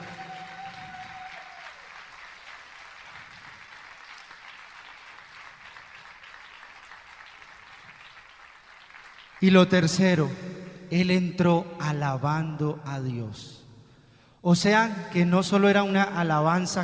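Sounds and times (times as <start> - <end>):
audience applauding: 0.0 - 9.8
speech: 9.4 - 13.6, 14.4 - 16.8.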